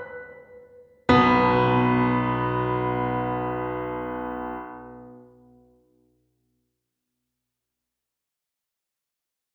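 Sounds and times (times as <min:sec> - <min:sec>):
piano sonata: 0:01.1 - 0:05.7.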